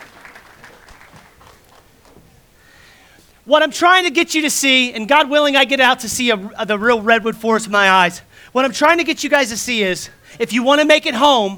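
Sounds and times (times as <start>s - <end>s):
audience clapping: 0.0s - 2.4s
speech: 3.5s - 11.5s.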